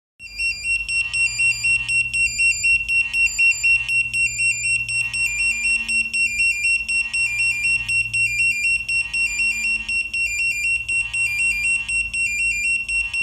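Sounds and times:
lifeboat pager alert: 0:00.2 - 0:13.2.

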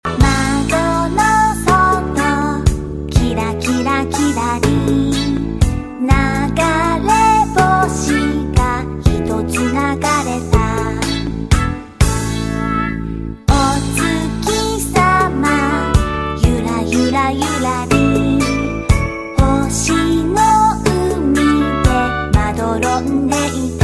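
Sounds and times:
cute Japanese song: 0:00.1 - 0:23.8.

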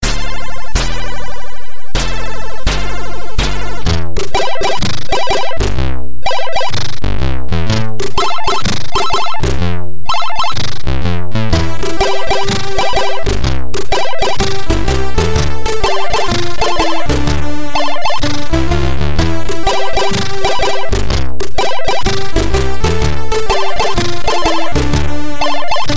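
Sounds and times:
Commodore 64 chiptune music: 0:00.0 - 0:25.9.

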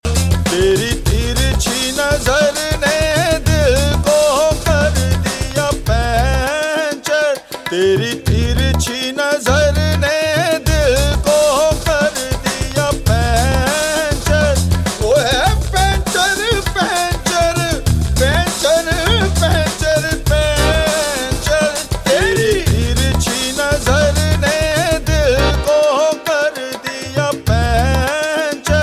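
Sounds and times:
disco music: 0:00.0 - 0:28.8.

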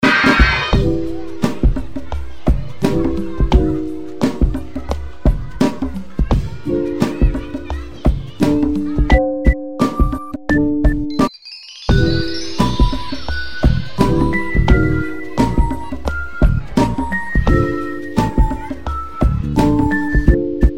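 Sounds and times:
swag music loop: 0:00.0 - 0:11.3, 0:11.9 - 0:20.7.

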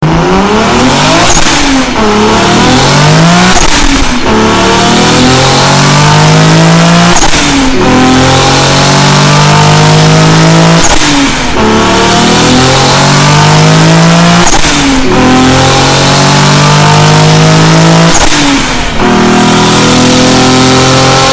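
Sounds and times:
Nissan Skyline turbo engine: 0:00.0 - 0:21.3.

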